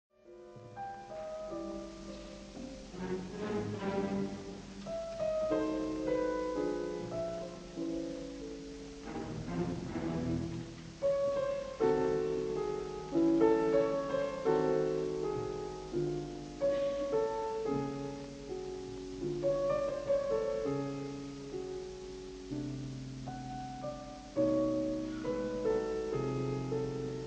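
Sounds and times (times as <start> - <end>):
symphonic music: 0.7 - 27.2.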